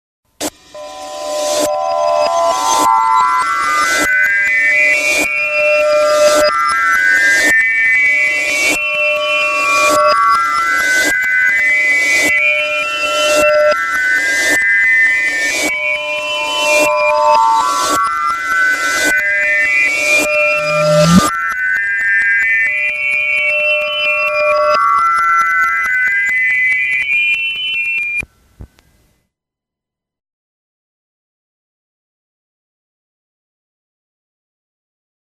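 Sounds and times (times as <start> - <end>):
reversed bells: 0.6 - 28.2.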